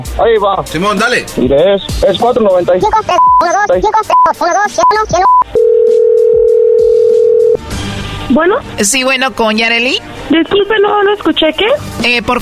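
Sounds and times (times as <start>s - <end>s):
speech: 0.0s - 6.0s, 8.3s - 12.4s
telephone dial tone: 5.3s - 7.6s.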